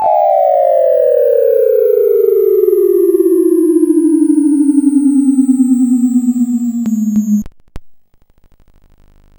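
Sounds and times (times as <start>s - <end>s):
teleport sound: 0.0s - 7.5s.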